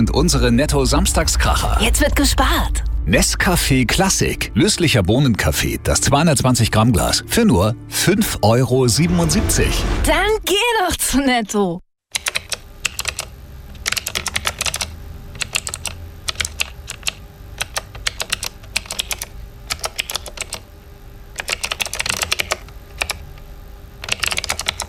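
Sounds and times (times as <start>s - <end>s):
low steady hum: 0.0s - 11.7s, 12.5s - 24.8s
speech: 0.0s - 11.8s
rapid keyboard typing: 12.1s - 20.6s, 21.4s - 23.2s, 24.0s - 24.8s.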